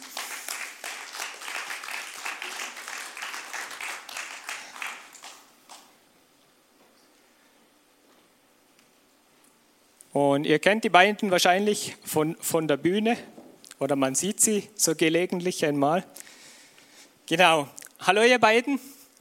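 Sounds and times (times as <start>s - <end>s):
audience applause: 0.0s - 5.9s
speech: 10.2s - 16.2s, 17.3s - 18.9s.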